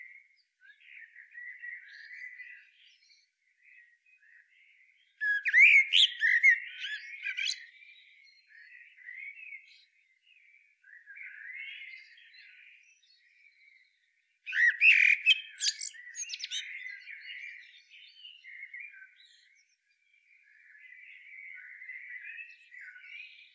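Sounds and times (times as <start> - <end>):
common blackbird song, Turdus merula: 0.0 - 23.5.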